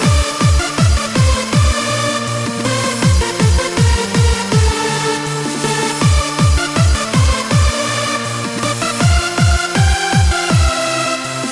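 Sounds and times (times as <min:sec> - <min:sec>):
hardcore trance music: 0:00.0 - 0:11.5.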